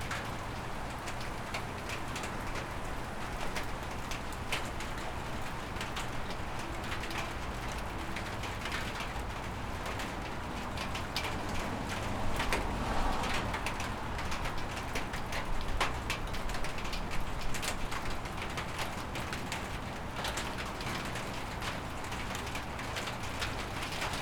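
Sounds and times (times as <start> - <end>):
rain on a carport: 0.0 - 24.1.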